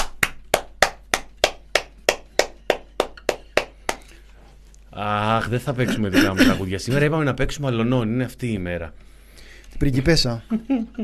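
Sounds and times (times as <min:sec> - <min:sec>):
single hand claps: 0:00.0 - 0:04.1
speech: 0:05.0 - 0:09.1, 0:09.8 - 0:11.0
laughter: 0:05.8 - 0:07.1.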